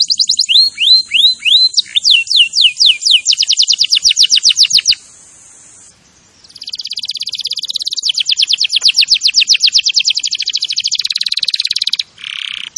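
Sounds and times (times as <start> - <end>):
Canary singing trills and whistled notes: 0.0 - 12.7.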